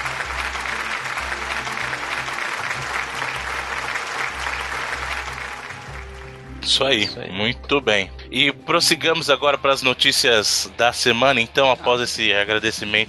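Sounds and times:
sustained crowd applause: 0.0 - 7.0
speech: 6.7 - 13.0.

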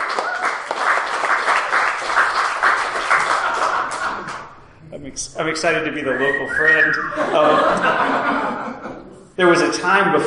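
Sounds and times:
crowd applauding: 0.0 - 4.6
laughter: 2.8 - 4.7, 6.0 - 9.2
speech: 5.2 - 8.8, 9.4 - 10.2.

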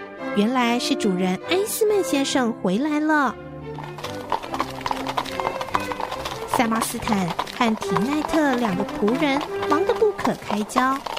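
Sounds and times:
speech: 0.4 - 3.4, 6.6 - 11.1
horse hooves of a horse-drawn carriage clip-clopping: 3.7 - 11.1.

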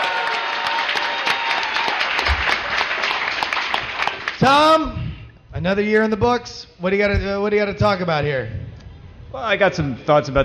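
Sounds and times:
audience applause at a Dragon Con panel: 0.0 - 4.4
speech: 4.4 - 5.0, 5.6 - 8.6, 9.3 - 10.4.

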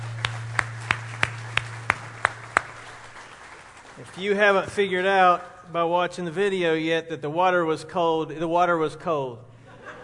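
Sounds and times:
audience applause: 0.0 - 4.9
speech: 4.0 - 9.5
laughter: 9.6 - 10.0.

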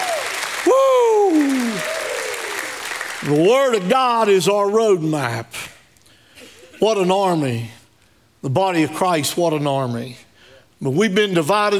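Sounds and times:
audience clapping: 0.0 - 3.9
speech: 0.6 - 0.9, 3.2 - 5.6, 6.8 - 7.8, 8.4 - 10.2, 10.8 - 11.7.

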